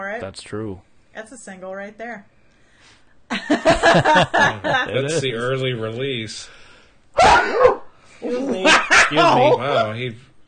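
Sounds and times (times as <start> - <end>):
speech: 0.0 - 6.6, 7.4 - 10.3
laughter: 3.3 - 5.5, 8.3 - 10.0
loud shrill sneeze: 7.2 - 7.9.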